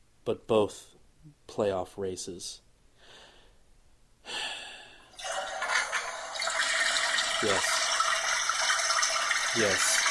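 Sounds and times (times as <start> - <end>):
speech: 0.2 - 2.6, 9.6 - 9.9
toilet flushing: 5.2 - 10.1.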